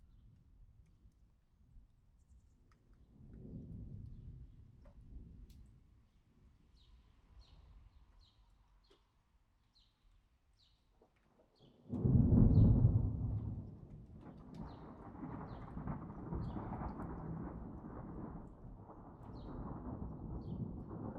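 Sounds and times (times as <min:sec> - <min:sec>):
thunder: 0:11.9 - 0:21.1.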